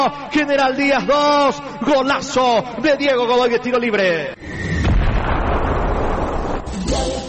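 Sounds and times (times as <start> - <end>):
speech: 0.0 - 4.6
rumbling explosive blast in a goal celebration alarm sound effect: 4.4 - 7.0.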